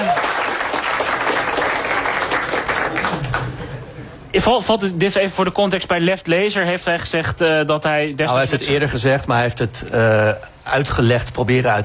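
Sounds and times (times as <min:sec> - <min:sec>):
audience applause: 0:00.0 - 0:03.8
speech: 0:04.4 - 0:11.8.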